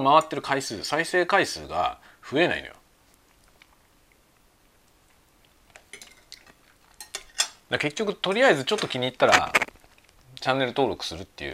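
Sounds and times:
speech: 0.0s - 2.8s, 7.7s - 9.7s, 10.4s - 11.5s
cutlery and dishes while eating lunch: 5.9s - 7.6s.

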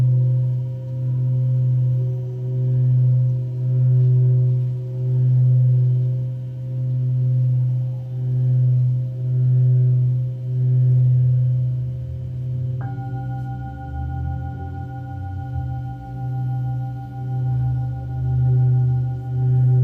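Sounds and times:
singing bowls humming: 0.0s - 19.8s
second singing bowl struck: 12.8s - 19.8s.

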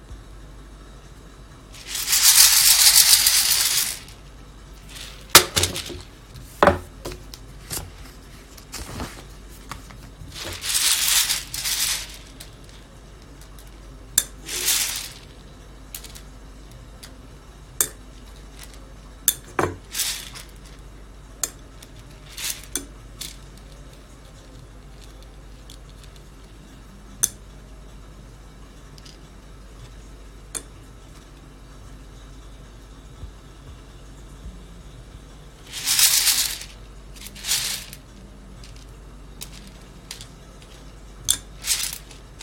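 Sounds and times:
raw coffee beans roasting, rattling and hissing: 1.8s - 17.2s, 17.8s - 26.5s, 35.6s - 42.4s.

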